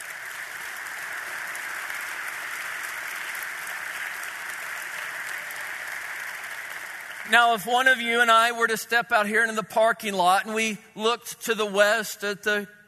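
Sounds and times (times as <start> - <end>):
audience applause welcoming a high school basketball team: 0.0 - 8.3
speech: 7.3 - 12.8.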